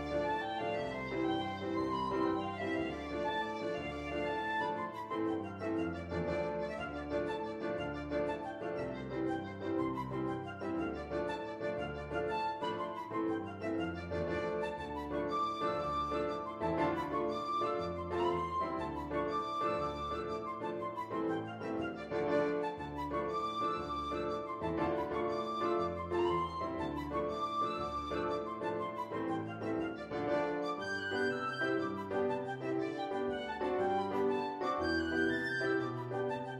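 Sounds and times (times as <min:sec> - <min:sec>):
penny whistle playing an Irish jig medley: 0:00.0 - 0:36.5.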